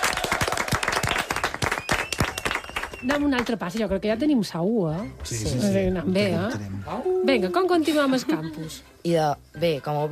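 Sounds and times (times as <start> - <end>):
applause: 0.0 - 3.6
speech: 3.0 - 10.1.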